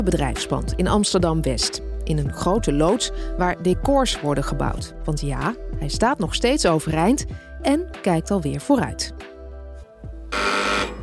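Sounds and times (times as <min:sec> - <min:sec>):
speech: 0:00.0 - 0:09.3
doorbell ringing: 0:10.3 - 0:11.0.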